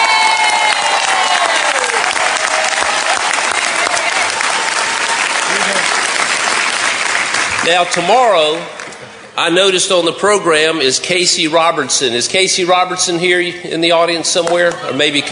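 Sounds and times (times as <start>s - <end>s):
person cheering: 0.0s - 6.0s
audience applause for a self-advocate welcomed to the stage: 0.0s - 9.1s
speech: 7.7s - 8.8s, 9.4s - 15.3s.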